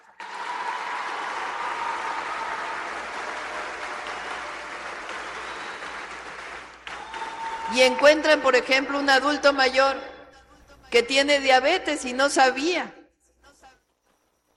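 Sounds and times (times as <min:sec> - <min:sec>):
crowd applause: 0:00.0 - 0:08.2
speech: 0:07.7 - 0:10.1, 0:10.9 - 0:13.0.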